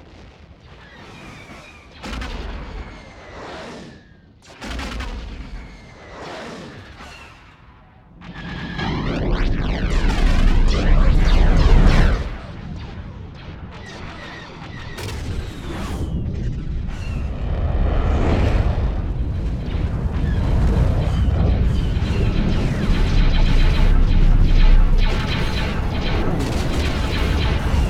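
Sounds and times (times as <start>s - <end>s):
ambience: 8.2s - 27.8s.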